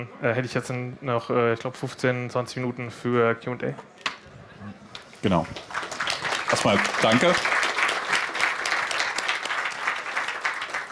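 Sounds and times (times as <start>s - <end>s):
speech: 0.0s - 5.8s, 6.5s - 7.6s
audience applause: 5.5s - 10.8s.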